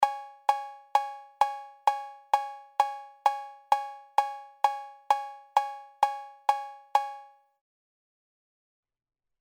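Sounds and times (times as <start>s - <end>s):
cowbell: 0.0s - 7.3s.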